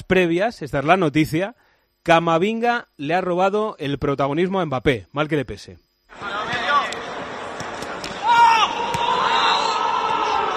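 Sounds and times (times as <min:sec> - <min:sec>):
speech: 0:00.1 - 0:06.3
football player's loud high-pitched scream during training: 0:08.2 - 0:10.5.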